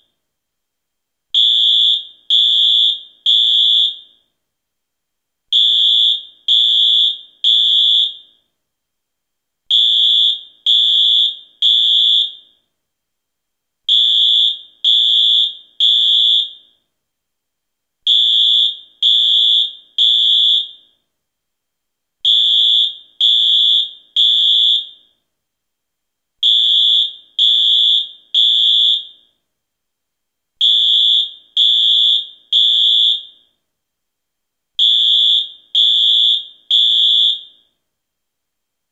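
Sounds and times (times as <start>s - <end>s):
fire alarm: 1.4s - 4.4s, 5.5s - 8.5s, 9.7s - 12.8s, 13.9s - 16.9s, 18.0s - 21.1s, 22.2s - 25.3s, 26.4s - 29.5s, 30.6s - 33.6s, 34.8s - 37.8s.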